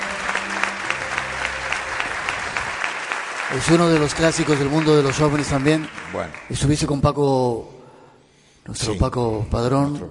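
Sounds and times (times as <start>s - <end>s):
audience applause welcoming a new guest on a show about UFO mysteries: 0.0s - 6.9s
speech: 3.5s - 7.8s, 8.7s - 10.0s.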